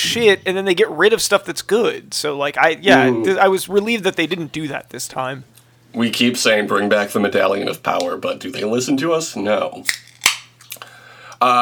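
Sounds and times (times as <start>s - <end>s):
speech: 0.0s - 10.1s, 11.4s - 11.6s
soda can opening: 9.9s - 10.8s.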